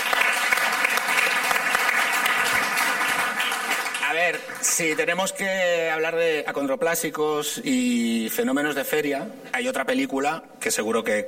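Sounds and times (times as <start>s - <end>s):
applause: 0.0s - 5.3s
speech: 4.3s - 11.2s.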